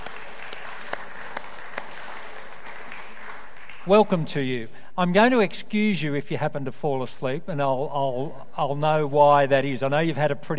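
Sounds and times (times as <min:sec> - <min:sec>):
audience clapping: 0:00.0 - 0:04.8
speech: 0:03.9 - 0:10.5.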